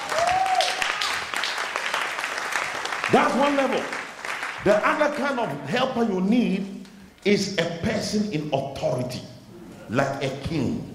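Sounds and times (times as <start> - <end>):
audience clapping: 0.0 - 5.3
speech: 3.1 - 4.0, 4.6 - 9.3, 9.9 - 10.9.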